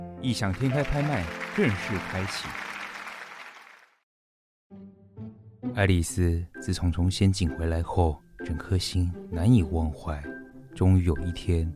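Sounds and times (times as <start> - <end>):
speech: 0.2 - 2.7, 5.8 - 11.7
audience applause: 0.4 - 4.0.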